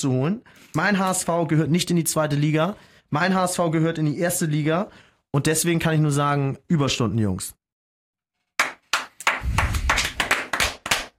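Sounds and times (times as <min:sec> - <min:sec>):
speech: 0:00.0 - 0:07.6
restrained applause from a small group: 0:08.6 - 0:11.1.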